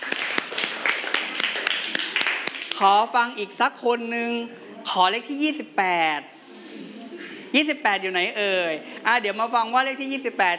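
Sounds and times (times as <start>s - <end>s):
students clapping for a classmate: 0.0s - 2.8s
speech: 2.8s - 6.9s, 7.5s - 10.5s.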